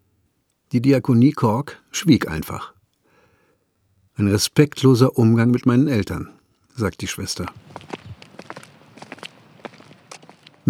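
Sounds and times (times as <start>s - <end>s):
speech: 0.7s - 2.8s, 4.2s - 8.0s
footsteps of people setting off on a walk: 7.3s - 10.6s.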